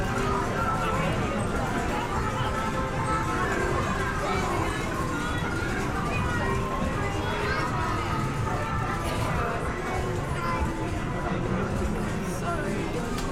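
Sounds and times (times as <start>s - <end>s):
overlapping chatter in an English seaside town amusement arcade: 0.0s - 13.3s
steady whir of arcade machines: 0.0s - 13.3s.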